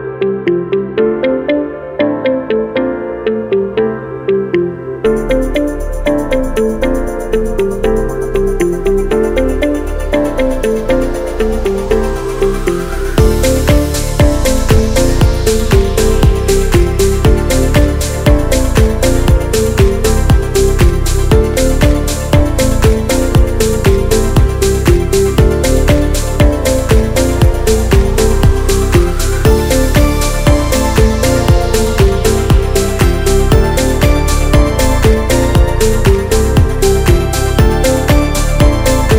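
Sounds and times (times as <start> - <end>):
commercial advertisement music: 0.4 - 39.1.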